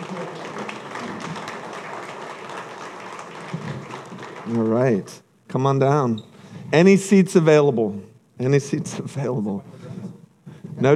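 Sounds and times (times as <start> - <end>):
audience applauding: 0.0 - 5.2
speech: 4.5 - 9.8.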